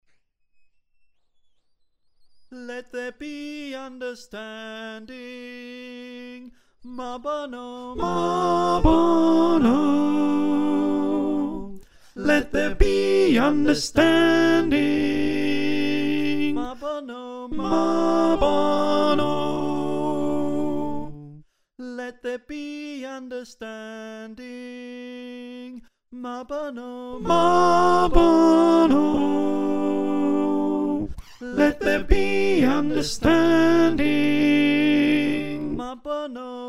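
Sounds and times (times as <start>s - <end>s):
alto choir singing: 7.0s - 21.4s, 27.0s - 36.6s.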